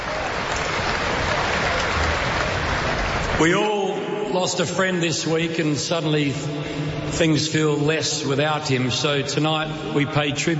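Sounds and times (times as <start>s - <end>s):
crowd and players applauding: 0.0s - 3.6s
speech: 3.4s - 3.8s, 4.4s - 10.5s.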